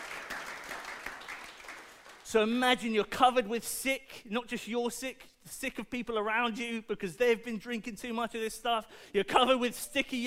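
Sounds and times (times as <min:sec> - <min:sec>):
audience applause: 0:00.0 - 0:02.2
speech: 0:02.3 - 0:10.2.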